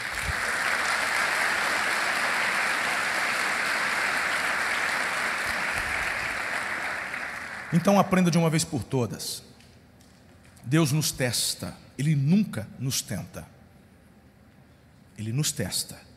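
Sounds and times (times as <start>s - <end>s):
audience applause: 0.0s - 8.3s
speech: 7.7s - 9.5s, 10.6s - 13.6s, 15.2s - 16.1s.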